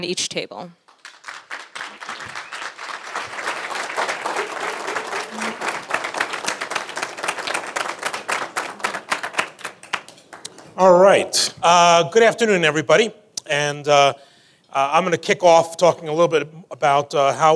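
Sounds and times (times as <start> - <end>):
speech: 0.0 - 0.8, 10.8 - 17.5
audience applause welcoming speakers at a Federal Reserve Bank of Chicago economic forecast event: 0.9 - 11.0.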